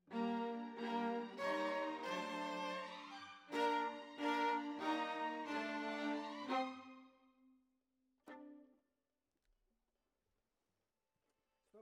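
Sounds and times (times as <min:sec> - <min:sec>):
violas: 0:00.1 - 0:07.1.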